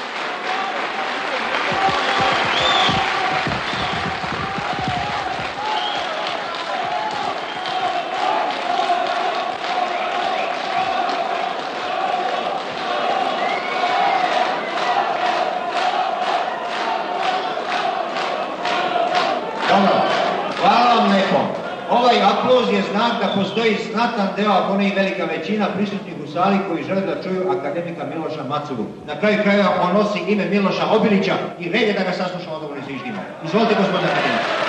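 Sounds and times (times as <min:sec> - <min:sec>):
applause and crowd noise in an assembly hall: 0:00.0 - 0:25.1, 0:33.0 - 0:34.6
speech: 0:23.4 - 0:34.6.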